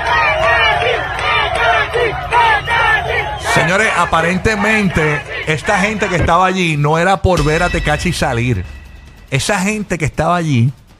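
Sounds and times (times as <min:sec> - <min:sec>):
crowd shouting outside a hotel in Samaná: 0:00.0 - 0:07.0
speech: 0:03.7 - 0:10.8.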